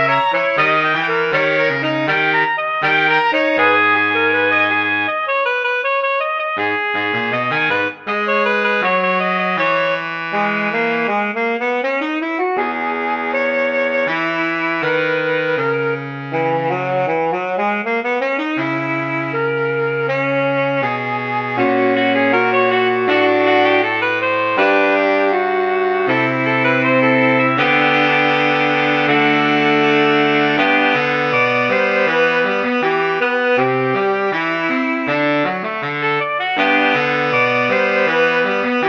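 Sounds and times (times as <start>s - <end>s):
MIDI saxophone quartet: 0.0s - 38.8s.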